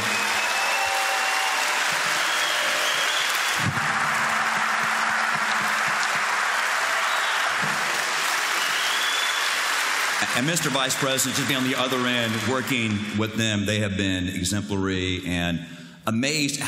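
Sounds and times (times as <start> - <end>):
audience applause: 0.0 - 13.1
speech: 10.4 - 16.6.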